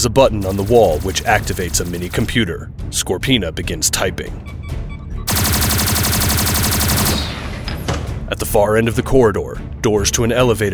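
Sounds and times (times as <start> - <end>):
speech: 0.0 - 4.8, 8.3 - 10.7
rapid automatic gunfire: 0.4 - 2.4, 5.3 - 7.7.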